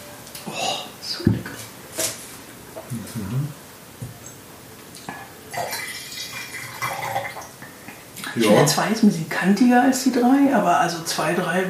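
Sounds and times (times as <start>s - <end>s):
speech: 2.9s - 3.6s, 8.4s - 11.6s
cold wine pouring into a cup: 5.5s - 7.6s.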